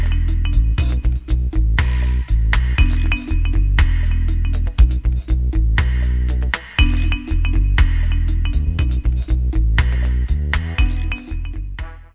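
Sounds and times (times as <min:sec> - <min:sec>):
Horn of Africa dub music: 0:00.0 - 0:12.1.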